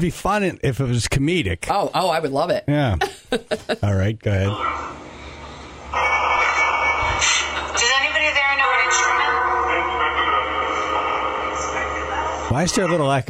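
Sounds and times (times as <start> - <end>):
speech: 0.0 - 5.0, 12.5 - 13.2
Phasma box spirit box scanning radio stations: 5.9 - 13.2.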